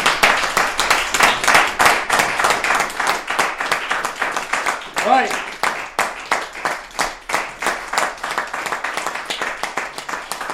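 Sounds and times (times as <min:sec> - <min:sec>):
audience applause: 0:00.0 - 0:10.5.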